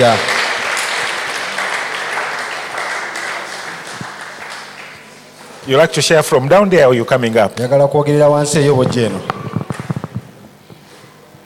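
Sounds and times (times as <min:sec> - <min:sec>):
speech: 0:00.0 - 0:00.3, 0:05.7 - 0:09.4
congregation clapping at a church service: 0:00.0 - 0:05.9, 0:08.5 - 0:10.3.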